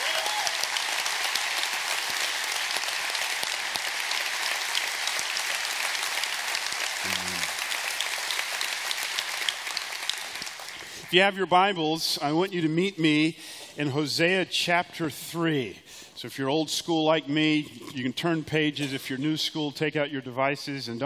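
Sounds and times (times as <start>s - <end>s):
audience hand clapping: 0.0s - 11.4s
speech: 11.1s - 21.0s.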